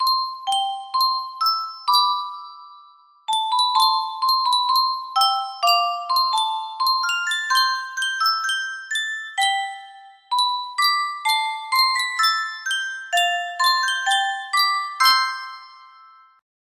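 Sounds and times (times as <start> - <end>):
Yunsheng custom tune music box melody: 0.0 - 16.4.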